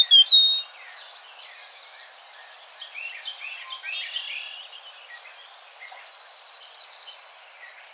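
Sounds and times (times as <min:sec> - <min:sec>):
Eastern Meadowlark singing: 0:00.0 - 0:00.6.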